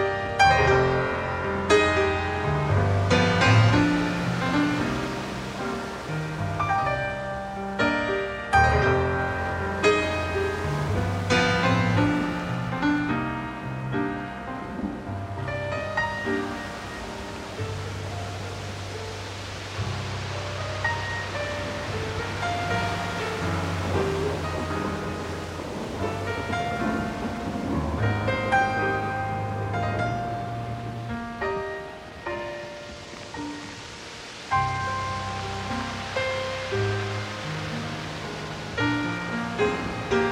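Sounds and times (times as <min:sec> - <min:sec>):
ocean waves: 0:00.0 - 0:40.2
thunderstorm over the ocean: 0:00.6 - 0:07.5, 0:08.6 - 0:40.2.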